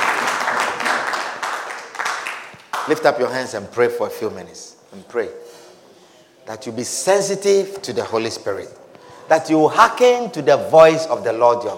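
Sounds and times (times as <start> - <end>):
audience clapping: 0.0 - 3.3
speech: 2.9 - 5.5, 6.5 - 11.7.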